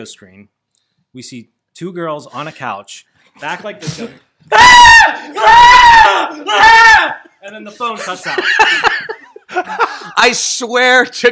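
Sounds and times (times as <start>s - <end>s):
speech: 0.0s - 0.6s, 1.2s - 11.3s
voice imitating teenage girls screaming: 4.5s - 7.2s
laughter: 7.2s - 10.5s.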